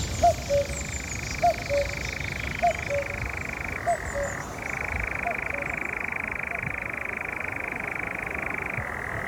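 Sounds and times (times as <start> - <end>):
short low croaking calls: 0.2 - 9.2
nightjar churring on a large heath near Eindhoven: 0.3 - 9.2.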